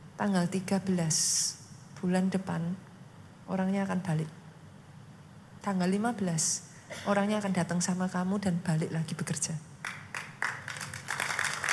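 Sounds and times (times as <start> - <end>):
speech: 0.2 - 2.9, 3.5 - 4.4, 5.6 - 9.7
audience clapping: 9.8 - 11.7.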